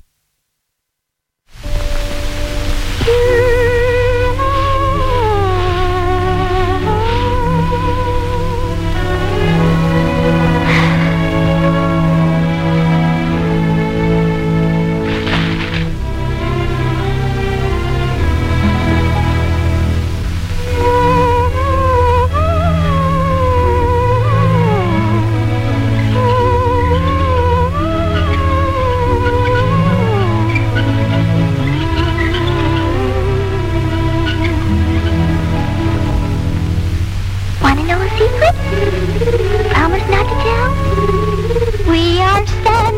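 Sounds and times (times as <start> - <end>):
steady orchestral accompaniment: 1.6 - 42.9
woman singing a gentle film song: 3.0 - 13.6, 20.6 - 30.8, 37.6 - 42.9.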